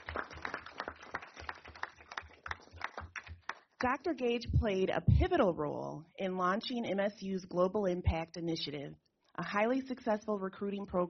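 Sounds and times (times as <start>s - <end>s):
audience applause: 0.0s - 3.6s
speech: 3.8s - 11.0s.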